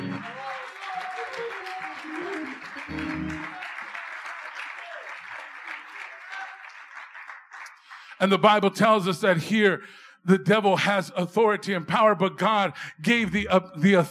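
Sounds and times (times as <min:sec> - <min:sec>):
cheering voices: 0:00.0 - 0:06.8
audience applause: 0:00.0 - 0:08.2
speech: 0:08.2 - 0:14.0.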